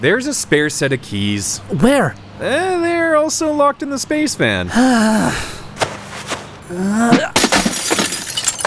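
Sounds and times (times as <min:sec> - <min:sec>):
speech: 0:00.0 - 0:05.6, 0:06.7 - 0:07.4
strained vocal-like tone: 0:04.7 - 0:05.8
window glass shattering: 0:07.3 - 0:08.6.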